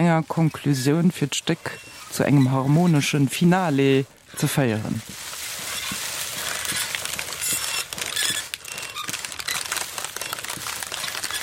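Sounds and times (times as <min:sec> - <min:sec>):
rhythmic rustling of plastic: 0:00.0 - 0:11.4
speech: 0:00.1 - 0:05.3.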